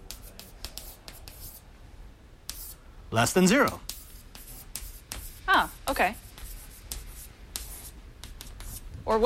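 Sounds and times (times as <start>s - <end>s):
handwriting scratching across a board during a programming lesson: 0.0s - 1.6s, 2.5s - 2.8s, 3.5s - 8.9s
soft hiss: 0.0s - 9.2s
speech: 3.1s - 3.9s, 5.9s - 6.2s, 9.1s - 9.2s.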